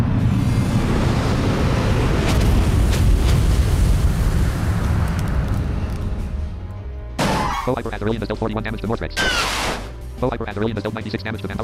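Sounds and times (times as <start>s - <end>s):
Flame Apocalypse fire attack blast in a turn-based video game battle: 0.0s - 6.3s
speech: 7.7s - 11.6s.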